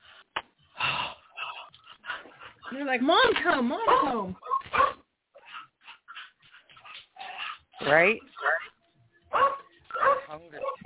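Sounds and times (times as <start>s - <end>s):
speech: 2.7s - 4.5s, 7.9s - 8.5s, 10.3s - 10.8s
dogs barking: 3.7s - 10.8s.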